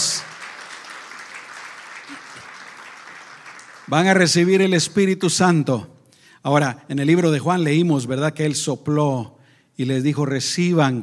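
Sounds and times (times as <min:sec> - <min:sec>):
audience applause: 0:00.0 - 0:04.6
speech: 0:03.9 - 0:11.0.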